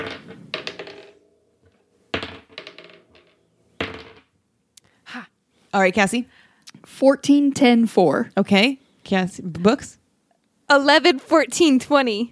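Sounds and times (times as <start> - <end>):
twenty-sided die being rolled: 0.0 - 4.3
speech: 5.7 - 10.0, 10.7 - 12.2.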